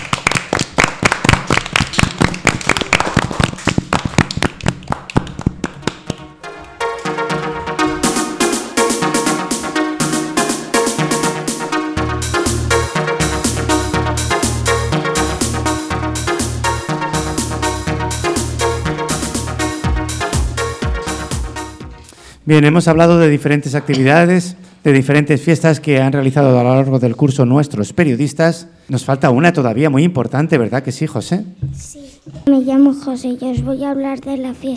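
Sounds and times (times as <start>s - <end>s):
audience applause: 0.0s - 6.2s
upbeat music with steady thumping bass beat: 1.2s - 22.1s
speech: 22.5s - 34.7s.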